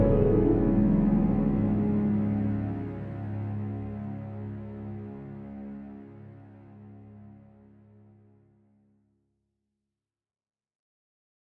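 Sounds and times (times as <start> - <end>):
low intensity action music: 0.0 - 6.4.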